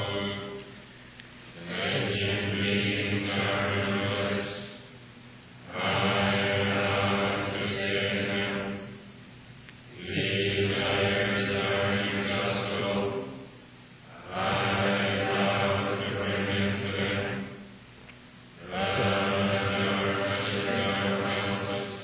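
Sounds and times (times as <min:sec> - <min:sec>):
end chant: 0:00.0 - 0:00.9, 0:01.6 - 0:05.0, 0:05.6 - 0:09.2, 0:09.9 - 0:17.8, 0:18.6 - 0:22.0.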